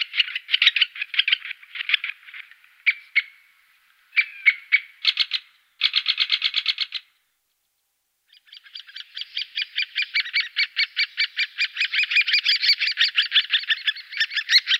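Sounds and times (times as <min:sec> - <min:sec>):
great spotted woodpecker calls: 0:00.0 - 0:03.5, 0:04.1 - 0:07.2, 0:08.3 - 0:14.7.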